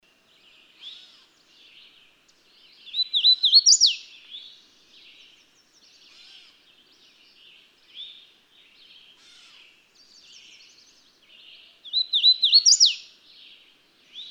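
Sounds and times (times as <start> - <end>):
bird song: 0.0 - 14.3.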